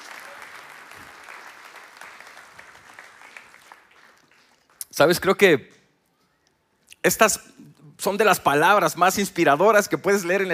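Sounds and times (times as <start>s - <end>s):
audience clapping together: 0.0s - 5.0s
speech: 5.0s - 5.8s, 7.0s - 10.5s.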